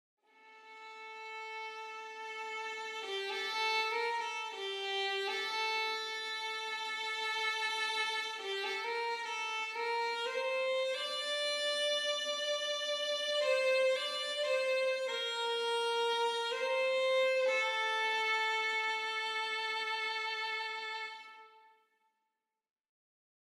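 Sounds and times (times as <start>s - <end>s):
solo violin in a modern mix: 0.3s - 21.8s.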